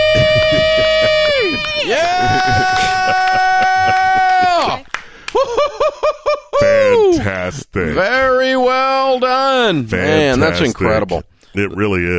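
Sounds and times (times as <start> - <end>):
couple shouting a celebratory scream: 0.0 - 4.8
laughter: 0.0 - 7.4
speech: 7.3 - 12.1.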